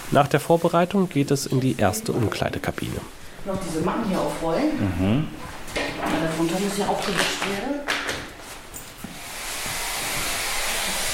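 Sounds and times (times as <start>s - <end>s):
speech: 0.1s - 8.0s
small spray bottle spraying shower room walls: 9.0s - 11.1s.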